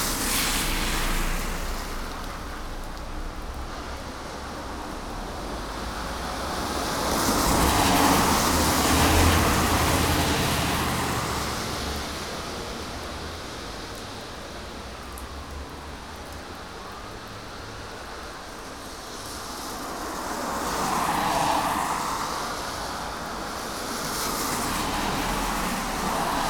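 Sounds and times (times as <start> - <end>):
street traffic on a rainy day in Coquitlam BC Canada: 0.0 - 26.4.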